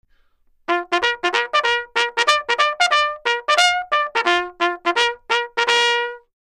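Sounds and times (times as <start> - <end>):
bugle call: 0.7 - 6.2.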